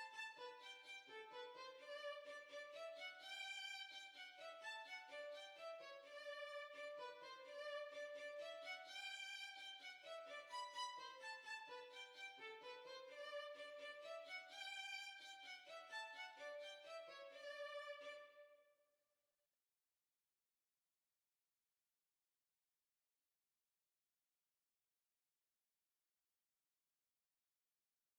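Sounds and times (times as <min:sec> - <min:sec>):
violin: 0:00.0 - 0:18.6.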